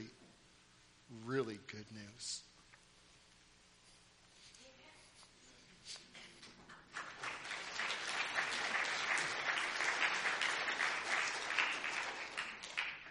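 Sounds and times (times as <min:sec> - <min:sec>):
speech: 0:01.3 - 0:02.5
audience clapping: 0:06.6 - 0:13.0.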